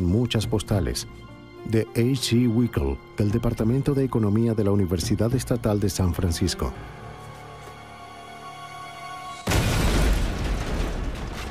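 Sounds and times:
speech: 0.0s - 7.0s
bomb explosion: 9.5s - 11.4s.

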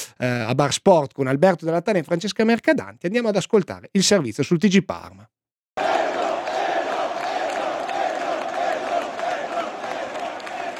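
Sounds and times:
speech: 0.2s - 5.4s
football fans chanting a player's name: 5.8s - 10.7s.

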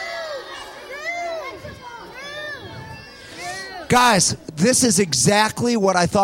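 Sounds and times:
children yelling answers: 0.0s - 4.0s
speech: 3.9s - 6.2s.

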